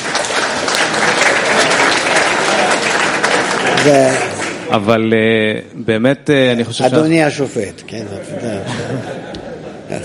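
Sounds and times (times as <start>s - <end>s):
audience applause: 0.0s - 4.9s
speech: 3.8s - 9.3s
laughter: 8.1s - 10.0s.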